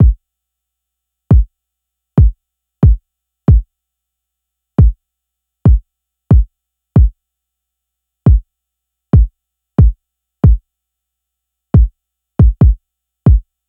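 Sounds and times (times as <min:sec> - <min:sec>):
kick drum: 0:00.0 - 0:00.2, 0:02.2 - 0:03.7, 0:05.7 - 0:07.2, 0:09.2 - 0:10.6, 0:11.8 - 0:13.5.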